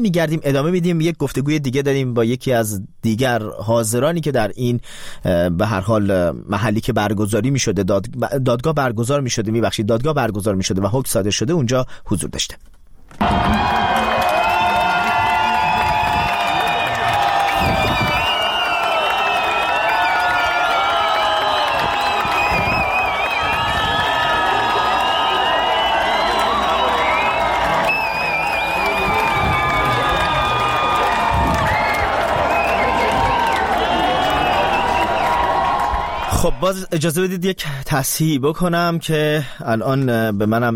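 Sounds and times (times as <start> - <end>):
speech: 0.0 - 13.8, 36.6 - 40.7
crowd cheering and whooping as a court verdict is announced: 13.2 - 36.6
whistles: 13.8 - 36.3.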